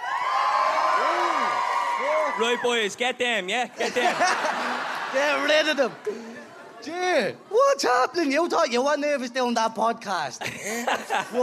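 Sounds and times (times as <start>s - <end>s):
whoops and shouts: 0.0s - 2.8s
crowd cheering: 0.0s - 3.0s, 3.9s - 6.8s
speech: 2.4s - 11.4s
laughter: 3.7s - 8.0s, 10.4s - 11.4s.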